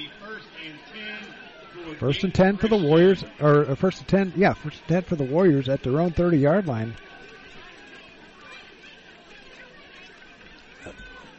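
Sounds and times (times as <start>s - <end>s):
crowd chatter at high school football game: 0.0s - 11.3s
speech: 0.6s - 7.1s.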